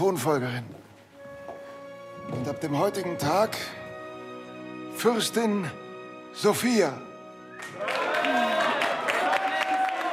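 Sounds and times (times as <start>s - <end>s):
speech: 0.0s - 0.8s, 2.3s - 3.8s, 5.0s - 5.8s, 6.4s - 7.8s
crowd cheering and clapping in throne room: 7.5s - 10.1s.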